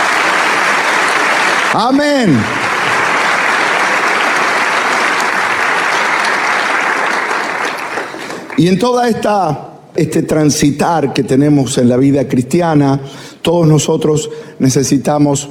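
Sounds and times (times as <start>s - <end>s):
crowd applause: 0.0s - 8.7s
speech: 1.7s - 2.6s, 8.6s - 15.4s.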